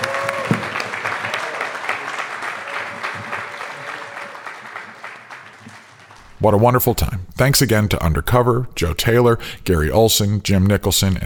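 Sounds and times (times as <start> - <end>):
audience applause for a band at a festival: 0.0 - 6.2
speech: 6.4 - 11.2.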